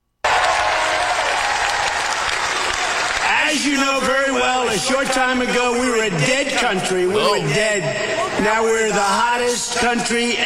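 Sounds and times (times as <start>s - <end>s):
audience applause: 0.2s - 3.6s
speech: 3.6s - 10.4s.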